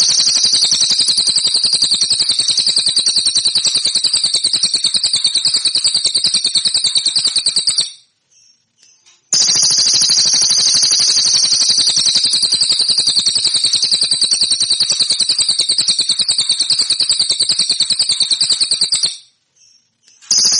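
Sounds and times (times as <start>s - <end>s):
song: 0.0s - 8.1s, 9.4s - 19.3s, 20.2s - 20.5s.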